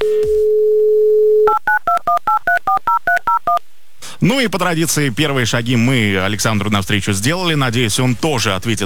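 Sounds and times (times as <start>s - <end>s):
telephone number being dialed: 0.8s - 3.6s
speech: 4.2s - 8.8s.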